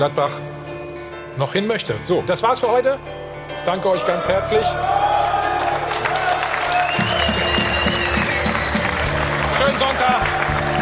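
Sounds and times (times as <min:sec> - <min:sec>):
speech: 0:00.0 - 0:00.5, 0:01.4 - 0:05.1
applause: 0:05.1 - 0:10.8.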